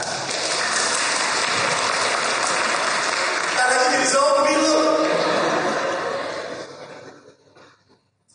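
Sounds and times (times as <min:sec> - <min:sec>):
audience clapping: 0:00.0 - 0:06.5
laughter: 0:04.5 - 0:07.9.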